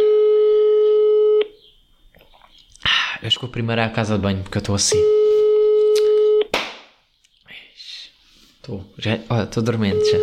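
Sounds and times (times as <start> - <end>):
telephone tone on a call to a brother: 0.0 - 1.6, 4.9 - 6.5, 9.9 - 10.2
speech: 3.4 - 5.2, 8.7 - 10.2.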